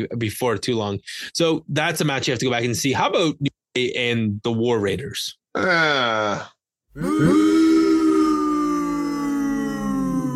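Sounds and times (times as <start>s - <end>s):
speech: 0.0s - 7.7s
person booing: 7.0s - 10.3s.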